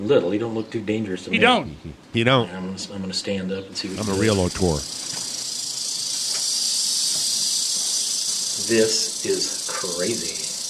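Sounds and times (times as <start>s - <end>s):
speech: 0.0s - 5.2s, 8.7s - 10.4s
rattlesnake rattling: 3.8s - 10.6s.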